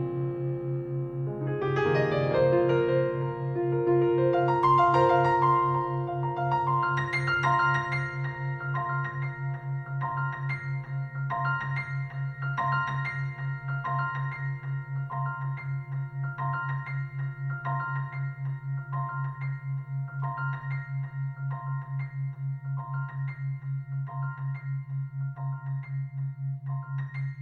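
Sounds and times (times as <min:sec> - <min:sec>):
piano ambience at 136Hz: 0:00.0 - 0:27.3.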